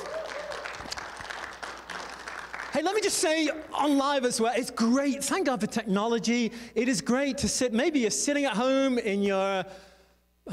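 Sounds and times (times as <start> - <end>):
church congregation applause welcoming a speaker at a worship centre: 0.0 - 3.6
speech: 2.8 - 9.9.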